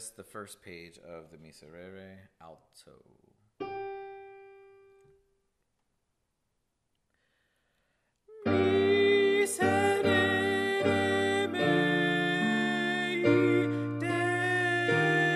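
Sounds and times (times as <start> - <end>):
alto voice singing: 8.3 - 15.3.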